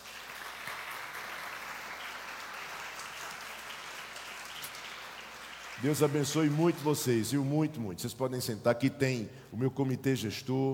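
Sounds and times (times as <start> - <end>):
audience applause: 0.0 - 7.3
speech: 5.8 - 10.7.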